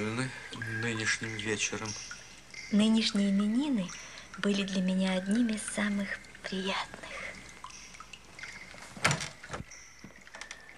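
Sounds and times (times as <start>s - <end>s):
speech: 0.0s - 2.1s, 2.7s - 7.2s
door opening: 9.0s - 10.7s.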